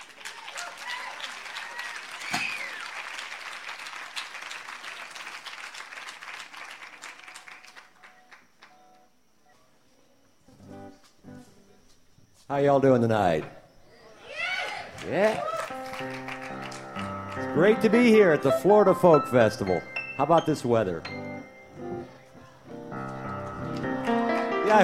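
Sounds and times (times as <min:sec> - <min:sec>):
audience applause welcoming an acoustic blues duo at the Florida Folk Festival: 0:00.0 - 0:08.8, 0:14.6 - 0:18.8, 0:22.9 - 0:24.8
speech: 0:12.5 - 0:13.6, 0:15.1 - 0:15.5, 0:17.6 - 0:21.2.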